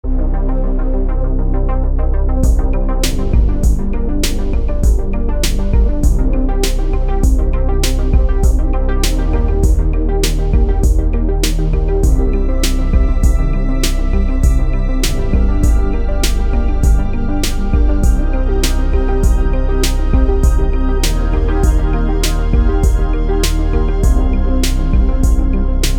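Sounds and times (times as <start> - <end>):
dark synthwave music: 0.0 - 25.9.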